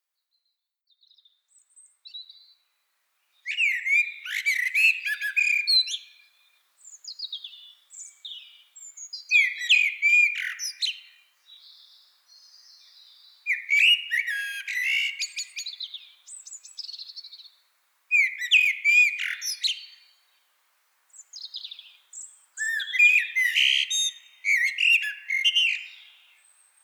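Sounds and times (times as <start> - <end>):
Eurasian blackbird fluting song: 3.4 - 6.3, 6.9 - 17.5, 18.1 - 20.2, 21.2 - 26.8.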